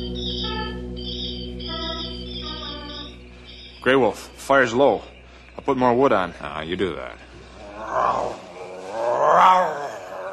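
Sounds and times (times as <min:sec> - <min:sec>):
speech: 0:03.8 - 0:07.3, 0:07.9 - 0:08.4, 0:09.3 - 0:09.8
grizzly bear roaring: 0:07.6 - 0:10.3.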